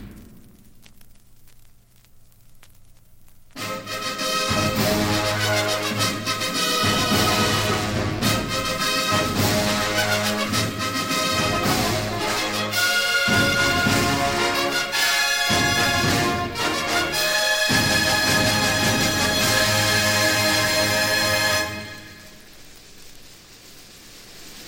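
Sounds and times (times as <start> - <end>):
fight song: 3.6 - 22.2
fanfare: 3.6 - 22.4.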